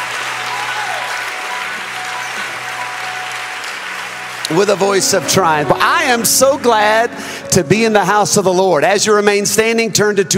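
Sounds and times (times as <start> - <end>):
audience clapping: 0.0 - 6.6
speech: 4.5 - 10.3.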